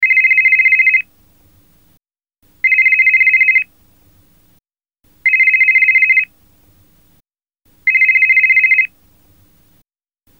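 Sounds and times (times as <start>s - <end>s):
basic tone ringtone: 0.0s - 1.0s, 2.6s - 3.7s, 5.2s - 6.3s, 7.9s - 8.9s.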